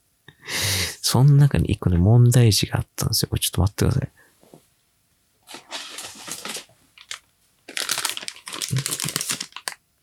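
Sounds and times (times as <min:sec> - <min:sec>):
speech: 0:01.1 - 0:04.2
shortbread biscuit plastic package crinkling: 0:05.4 - 0:09.8.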